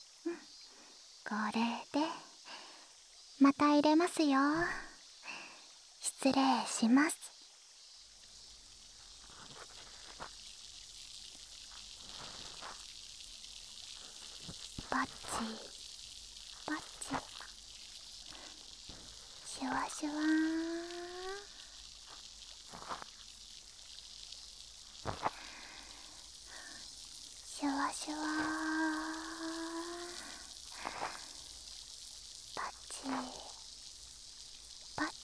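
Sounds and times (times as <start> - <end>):
speech: 1.3 - 2.3, 3.4 - 4.9, 6.2 - 7.2
fizzing sound deep in the ear: 8.0 - 35.2.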